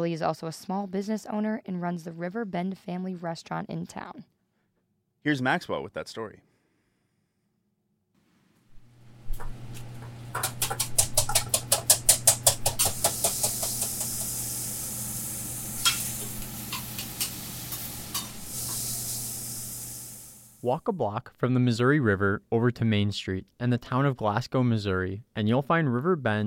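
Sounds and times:
speech: 0.0 - 4.3, 5.2 - 6.5, 20.6 - 26.4
eggs frying sunny side up on a hot griddle: 9.4 - 20.6.

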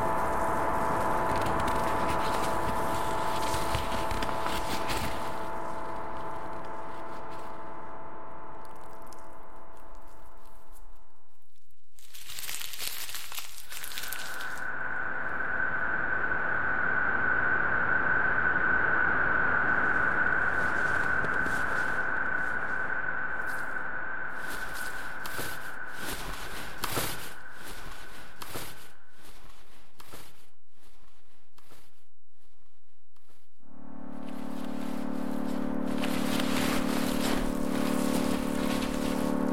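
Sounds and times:
generative ambient synthesized microtonal chords: 0.0 - 11.1, 14.1 - 28.1, 33.6 - 39.5
crackly bursts of paper, snow and salt samples: 0.0 - 14.8, 19.6 - 30.5, 34.0 - 39.5.

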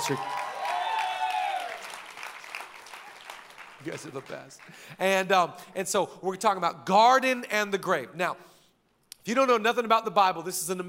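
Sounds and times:
audience clapping and cheering: 0.0 - 5.3
speech: 0.1 - 0.4, 3.8 - 8.6, 9.2 - 10.8.

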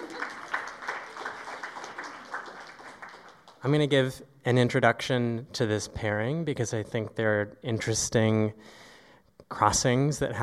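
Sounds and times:
small crowd clapping: 0.0 - 3.9
speech: 3.6 - 8.9, 9.5 - 10.4.

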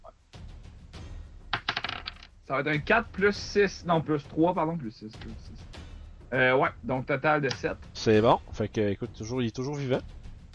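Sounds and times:
six-sided die rolling on a hard table: 1.5 - 2.3
speech: 2.5 - 5.6, 6.3 - 10.2.

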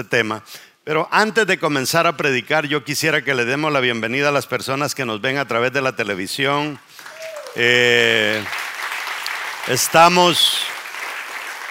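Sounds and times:
speech: 0.0 - 7.0, 7.6 - 8.6, 9.6 - 10.7
audience applause: 6.9 - 11.7.

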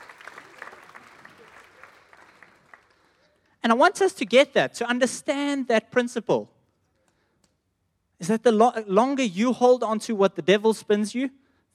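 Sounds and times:
audience applause for volunteers: 0.0 - 3.3
speech: 3.6 - 6.5, 8.2 - 11.7.

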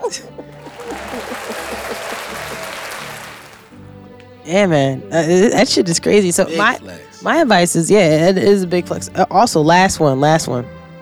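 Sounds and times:
laughter: 0.0 - 3.7, 5.2 - 7.5
crowd cheering: 0.0 - 3.8, 6.5 - 7.2
speech: 0.1 - 1.6, 4.5 - 10.8.

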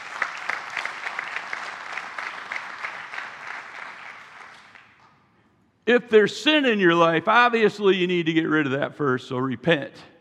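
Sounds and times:
crowd audience applauding: 0.0 - 5.0
speech: 5.9 - 10.1.

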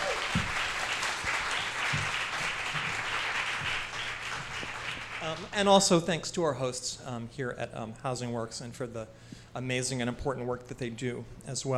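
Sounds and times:
audience applause: 0.0 - 5.6
speech: 5.3 - 11.7.

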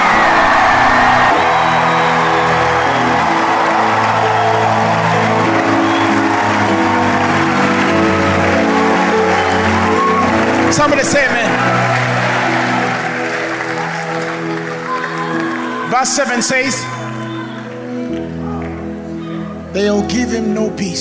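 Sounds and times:
audience clapping: 0.0 - 19.0
speech: 10.8 - 11.3, 16.0 - 16.9, 19.8 - 20.9.

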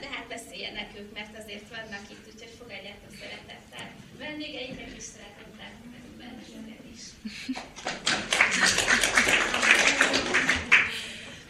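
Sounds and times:
speech: 0.7 - 8.0
audience applause: 7.6 - 11.4.

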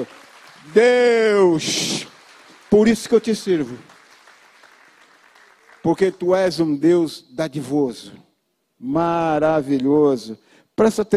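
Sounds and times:
speech: 0.0 - 2.1, 2.7 - 3.9, 5.8 - 8.2, 8.8 - 11.1
audience applause: 0.0 - 6.3.

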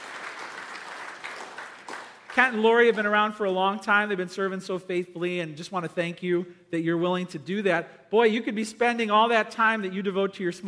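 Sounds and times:
crowd applauding: 0.0 - 3.0
speech: 2.4 - 10.6.

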